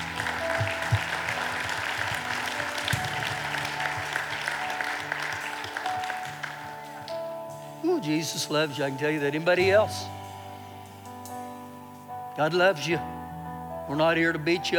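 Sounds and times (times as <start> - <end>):
audience applause: 0.0 - 7.4
speech: 8.0 - 10.2, 12.4 - 13.2, 13.9 - 14.7.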